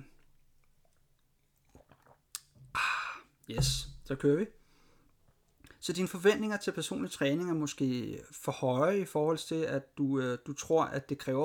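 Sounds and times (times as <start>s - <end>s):
person drinking water: 1.6s - 4.0s
speech: 3.5s - 4.6s, 5.8s - 11.4s.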